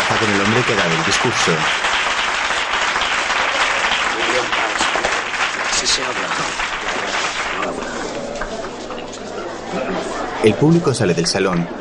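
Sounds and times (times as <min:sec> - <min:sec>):
audience applauding loudly after speech: 0:00.0 - 0:08.8
speech: 0:00.1 - 0:02.1, 0:05.8 - 0:07.0, 0:07.6 - 0:08.2, 0:10.4 - 0:11.7.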